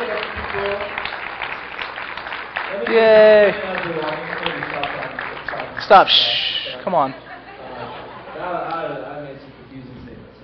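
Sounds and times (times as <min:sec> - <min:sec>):
audience clapping: 0:00.0 - 0:06.8
speech: 0:02.9 - 0:04.6, 0:05.9 - 0:07.2
laughter: 0:06.6 - 0:09.0.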